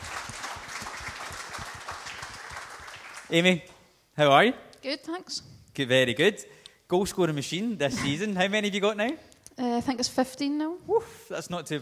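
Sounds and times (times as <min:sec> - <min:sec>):
audience applause: 0:00.0 - 0:03.5
speech: 0:03.3 - 0:11.7.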